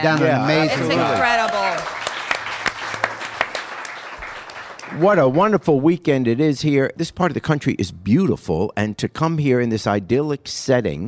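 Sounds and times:
speech: 0.0s - 2.0s, 4.9s - 11.0s
audience applauding: 0.0s - 5.6s.

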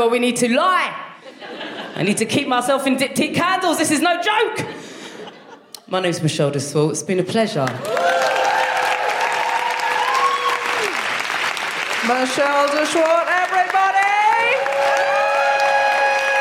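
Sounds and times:
speech: 0.0s - 4.8s, 5.9s - 8.4s, 12.0s - 14.6s
laughter: 1.2s - 2.1s, 4.7s - 5.9s
audience applause: 7.8s - 16.4s.

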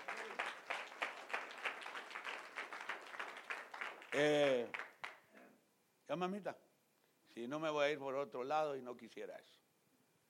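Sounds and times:
audience applause: 0.0s - 5.2s
speech: 4.1s - 4.8s, 6.1s - 6.6s, 7.4s - 9.6s.

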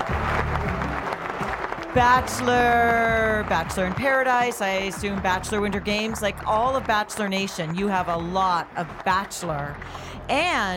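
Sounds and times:
tonal music: 0.0s - 6.9s
excited crowd cheering and applauding: 0.0s - 10.7s
speech: 2.0s - 10.7s.

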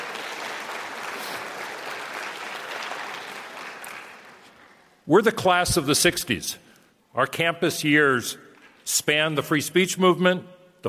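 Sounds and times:
audience applause: 0.0s - 5.0s
speech: 5.1s - 10.8s.

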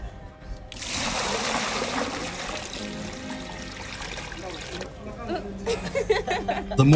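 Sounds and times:
water being pumped into a cistern: 0.7s - 5.0s
laughter: 5.0s - 6.9s.

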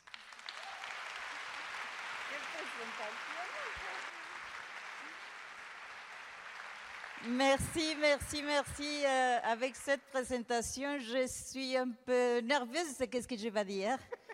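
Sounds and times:
audience applause: 0.0s - 8.5s
speech: 2.3s - 4.2s, 7.2s - 14.2s.

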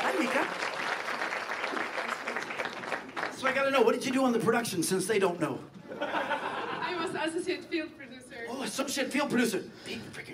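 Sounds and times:
audience applause: 0.0s - 3.7s
speech: 3.4s - 6.3s, 7.3s - 10.3s
laughter: 5.8s - 7.4s.

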